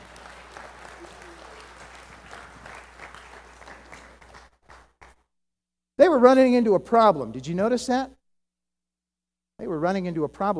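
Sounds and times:
audience applause: 0.0s - 5.2s
speech: 6.0s - 8.2s, 9.8s - 10.5s.

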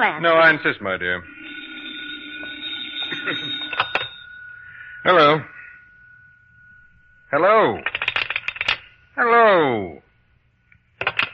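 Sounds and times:
speech: 0.0s - 1.4s, 3.2s - 3.6s, 5.0s - 5.6s, 7.3s - 8.0s, 9.2s - 10.0s
telephone ringing: 0.2s - 8.9s.

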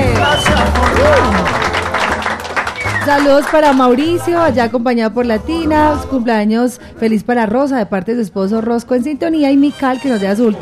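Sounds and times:
audience applause: 0.0s - 4.1s
speech: 3.1s - 10.6s.

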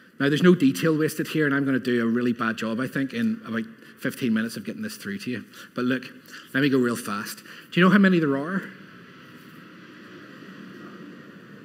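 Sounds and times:
speech: 0.2s - 8.8s
airplane flying overhead: 2.8s - 11.6s.

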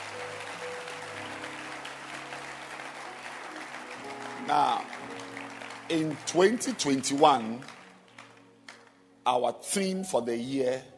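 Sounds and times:
audience clapping hands: 0.0s - 9.0s
speech: 4.5s - 5.0s, 5.9s - 7.8s, 9.3s - 10.9s.

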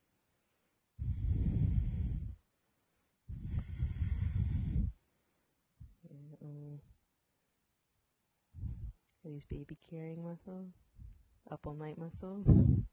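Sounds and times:
deep Ujjayi breathing during a yoga class: 0.5s - 2.4s, 3.3s - 5.0s
speech: 9.3s - 10.9s, 11.5s - 12.9s.

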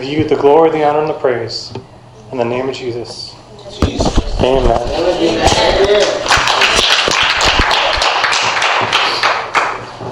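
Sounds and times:
speech: 0.0s - 6.3s
audience hand clapping: 5.8s - 10.0s.

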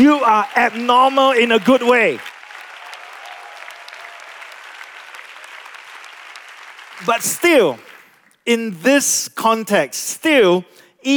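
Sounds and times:
speech: 0.0s - 2.3s, 7.0s - 7.9s, 8.5s - 11.1s
large audience applause: 0.0s - 8.4s.

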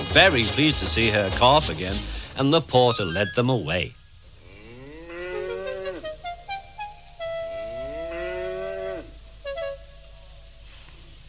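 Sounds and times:
speech: 0.1s - 4.0s
cow mooing: 4.4s - 6.2s, 7.6s - 9.2s.

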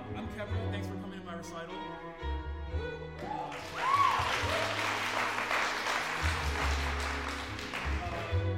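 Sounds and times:
speech: 0.1s - 5.5s
audience applause at a recital: 3.2s - 8.4s.

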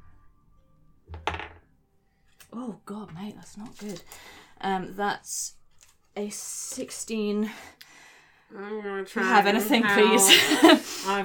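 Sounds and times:
dice landing on a table: 1.1s - 1.6s
speech: 2.5s - 5.6s, 6.2s - 7.9s, 8.5s - 11.2s
laughter: 9.8s - 11.2s.

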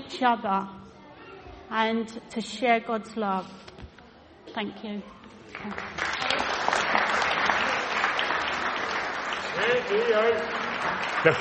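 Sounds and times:
speech: 0.1s - 0.8s, 1.7s - 3.7s, 4.5s - 6.0s, 9.6s - 11.3s
applause: 5.5s - 11.3s.

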